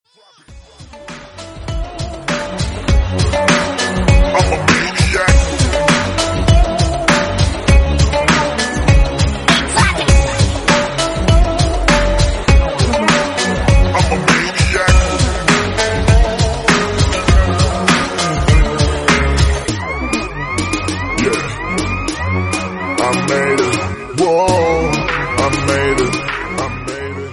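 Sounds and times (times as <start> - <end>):
music: 0.1 - 27.3.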